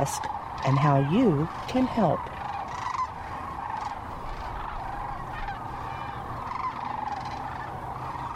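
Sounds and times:
speech: 0.0s - 2.4s
sandhill cranes calling in a dense flock: 0.0s - 8.3s.

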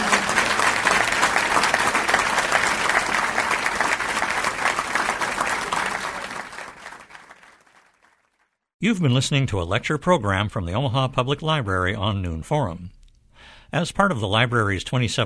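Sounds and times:
audience applause: 0.0s - 8.5s
speech: 8.8s - 13.0s, 13.7s - 15.2s.

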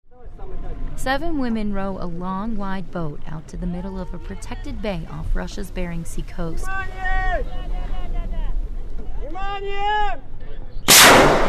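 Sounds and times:
speech: 1.0s - 7.8s, 9.3s - 10.3s
flare launching: 10.9s - 11.4s.

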